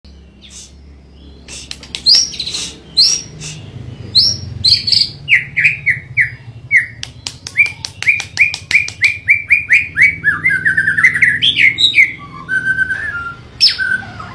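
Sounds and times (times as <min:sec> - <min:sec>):
White-rumped Shama song: 0:05.4 - 0:14.1.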